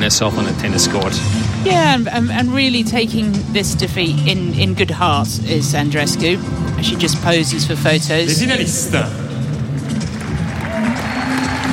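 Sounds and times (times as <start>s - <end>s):
speech: 0.1s - 9.2s
audience clapping for finalists after a women's tennis doubles final: 9.9s - 11.7s.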